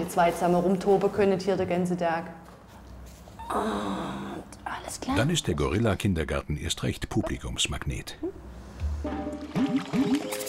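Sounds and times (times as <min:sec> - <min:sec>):
speech: 0:00.1 - 0:02.5, 0:03.5 - 0:10.3
water splashing as a female penguin bathes: 0:09.3 - 0:10.4.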